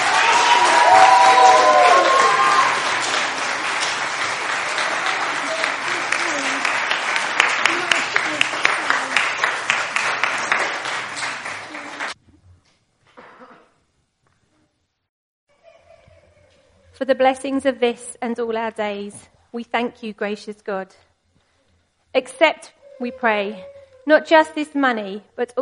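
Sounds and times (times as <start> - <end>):
whoops and cheers: 0.0 - 3.1
audience applause: 0.0 - 12.2
speech: 17.1 - 21.1, 22.1 - 25.6.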